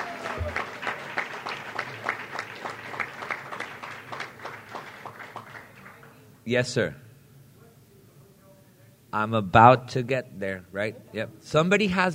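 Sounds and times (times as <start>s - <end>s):
round of applause: 0.0s - 6.3s
speech: 6.5s - 7.0s, 9.2s - 12.1s.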